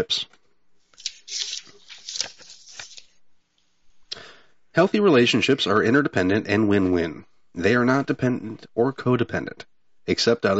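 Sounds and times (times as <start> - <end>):
speech: 0.0 - 0.4, 4.8 - 10.5
reading cards being shuffled and drawn from a deck: 0.9 - 3.2.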